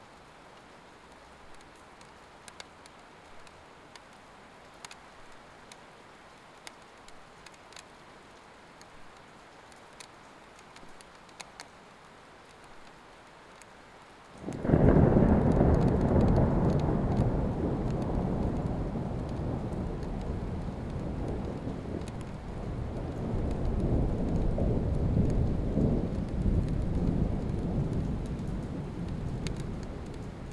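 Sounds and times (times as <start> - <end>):
rain heard out of a window: 0.0 - 30.5
thunder: 14.4 - 30.5.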